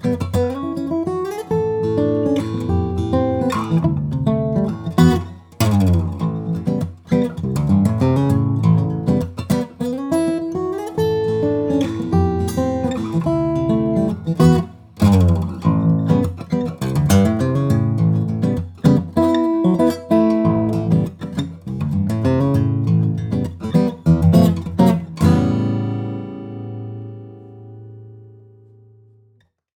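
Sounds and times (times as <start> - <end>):
2008 Goodall baritone steel-string flattop guitar of East Indian rosewood and Sitka spruce: 0.0 - 29.3.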